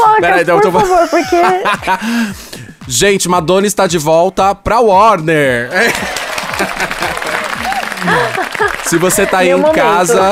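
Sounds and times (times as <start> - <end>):
speech: 0.2 - 7.4, 8.0 - 10.2
laughter: 0.4 - 2.2, 5.7 - 10.2
applause sound effect: 5.8 - 10.2.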